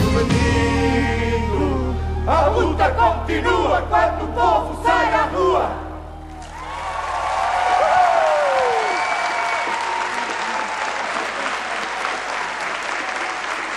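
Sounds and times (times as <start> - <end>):
speech: 0.1 - 0.9, 2.3 - 5.9
audience applause: 6.3 - 13.7.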